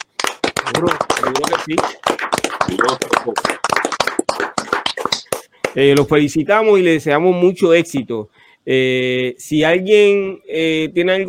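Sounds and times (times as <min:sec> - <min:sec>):
audience applause: 0:00.0 - 0:05.8
speech: 0:00.7 - 0:03.9, 0:05.8 - 0:11.2.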